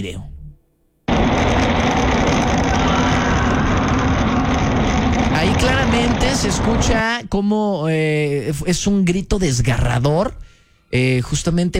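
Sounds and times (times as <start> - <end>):
speech: 0.0 - 0.3, 5.4 - 11.7
motorcycle riding past: 1.1 - 7.0.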